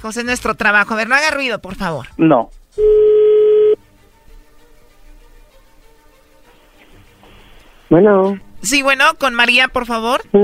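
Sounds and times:
speech: 0.0s - 3.1s, 7.9s - 10.4s
telephone tone: 2.8s - 3.8s.

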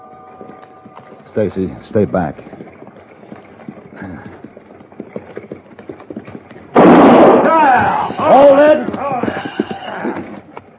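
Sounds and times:
horse hooves clip-clopping over a rough trail: 0.0s - 10.7s
speech: 1.3s - 2.7s
gunshot fired into the air: 6.8s - 8.1s.

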